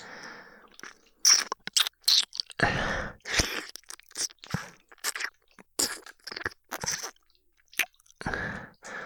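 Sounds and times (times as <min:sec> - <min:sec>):
wet ear-licking mouth sounds: 0:00.7 - 0:02.6, 0:03.2 - 0:08.3.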